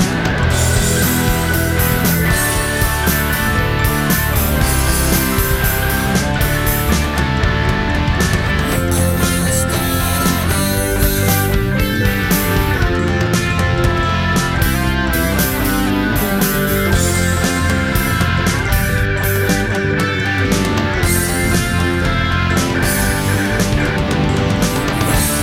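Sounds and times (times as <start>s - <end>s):
karaoke full mix: 0.0s - 25.4s.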